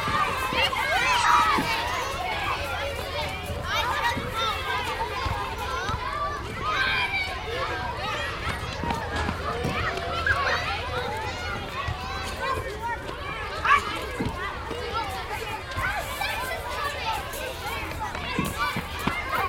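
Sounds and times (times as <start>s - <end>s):
elementary school ambience: 0.0s - 19.4s.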